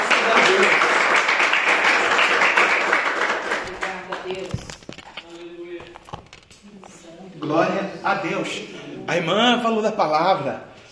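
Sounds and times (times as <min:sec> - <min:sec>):
audience applauding: 0:00.0 - 0:04.3
speech: 0:08.4 - 0:10.7.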